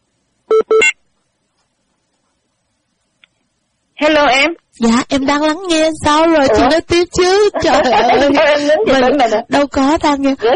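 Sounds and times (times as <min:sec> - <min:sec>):
telephone dialing beeps: 0:00.5 - 0:01.0
speech: 0:04.0 - 0:10.5
laughter: 0:07.4 - 0:09.5.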